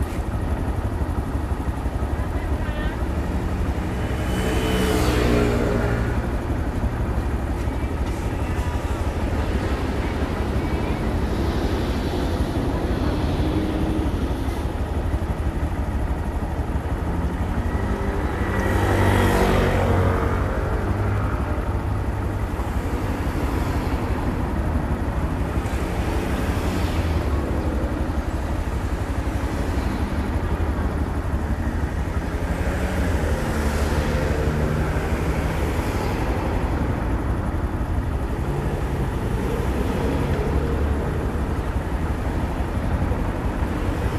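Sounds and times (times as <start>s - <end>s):
motorcycle engine rumbling while ridden: 0.0s - 44.1s.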